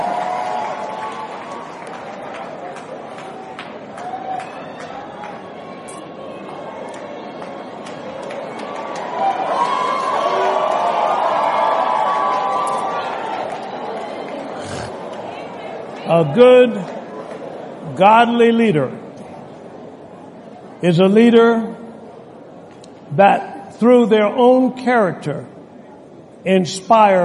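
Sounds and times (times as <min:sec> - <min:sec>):
crowd applause: 0:00.0 - 0:16.0
speech: 0:16.1 - 0:16.9, 0:18.0 - 0:19.0, 0:20.8 - 0:21.8, 0:23.2 - 0:25.6, 0:26.4 - 0:27.2.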